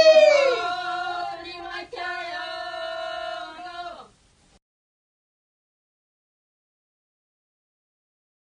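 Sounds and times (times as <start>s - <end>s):
Bulgarian polyphonic singing: 0.0s - 4.2s.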